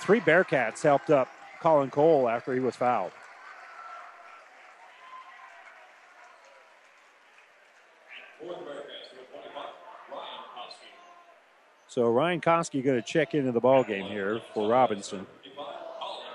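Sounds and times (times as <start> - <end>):
speech: 0.0 - 3.2, 11.9 - 15.4
fans applauding in a gym: 0.0 - 8.9
fans cheering: 0.0 - 16.3.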